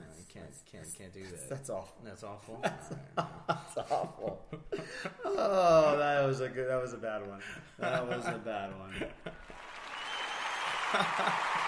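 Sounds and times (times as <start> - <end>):
speech: 0.4 - 9.5, 10.9 - 11.6
laughter: 2.4 - 5.8, 7.4 - 9.8, 10.6 - 11.6
crowd applause sound effect: 9.4 - 11.6.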